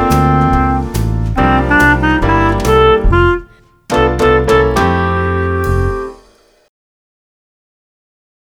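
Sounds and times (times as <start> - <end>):
swing music: 0.0 - 6.6.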